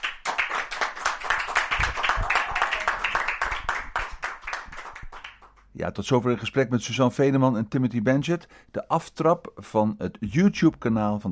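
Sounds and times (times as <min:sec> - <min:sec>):
audience applause: 0:00.0 - 0:05.5
speech: 0:05.8 - 0:11.3.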